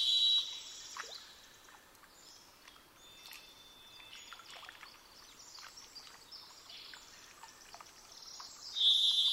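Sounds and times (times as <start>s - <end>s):
varied thrush song: 0.0s - 0.6s, 8.8s - 9.3s.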